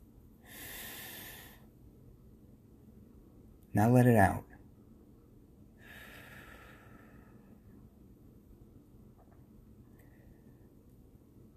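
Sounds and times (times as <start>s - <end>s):
deep breath in during guided gratitude meditation: 0.4s - 1.7s, 5.8s - 7.6s
speech: 3.8s - 4.5s.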